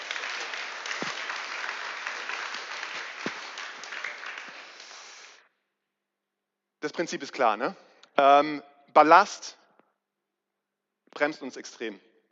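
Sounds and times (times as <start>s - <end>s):
audience applause: 0.0s - 5.4s
speech: 6.8s - 9.6s, 11.2s - 12.1s.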